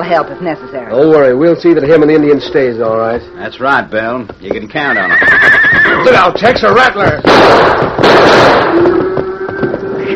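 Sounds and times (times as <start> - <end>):
speech: 0.0 - 9.0
gunfire: 7.1 - 9.1.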